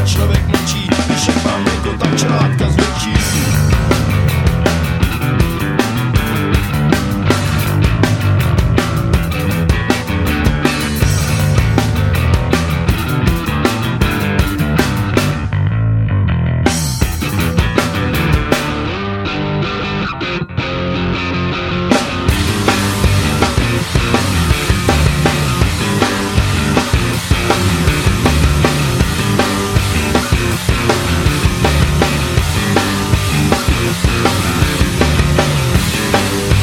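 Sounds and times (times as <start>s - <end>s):
bass drums: 0.0s - 19.9s, 21.2s - 36.6s.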